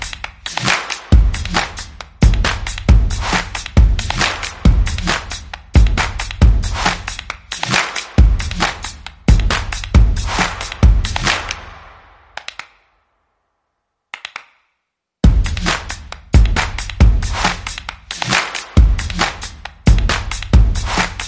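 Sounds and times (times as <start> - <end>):
percussion: 0.0 - 12.9, 14.1 - 21.2.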